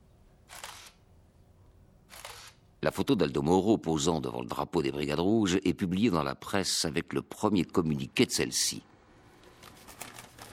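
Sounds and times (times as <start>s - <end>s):
camera shutter taking a portrait photo: 0.5s - 1.0s, 2.1s - 2.6s
speech: 2.8s - 8.9s.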